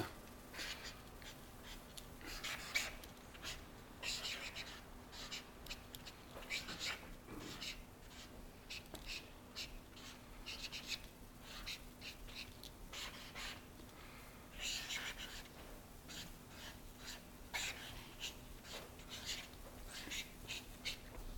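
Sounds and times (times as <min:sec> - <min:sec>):
writing on a board: 0:00.0 - 0:21.2.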